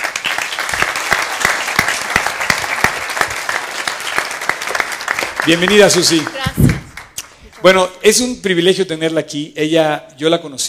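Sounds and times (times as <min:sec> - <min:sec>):
audience applause: 0:00.0 - 0:07.4
speech: 0:05.5 - 0:06.7, 0:07.6 - 0:10.6.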